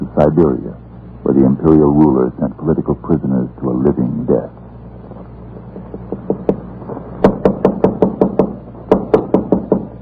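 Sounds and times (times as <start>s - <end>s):
speech: 0.2s - 4.6s
knocking on a door: 6.0s - 6.6s, 7.2s - 10.0s.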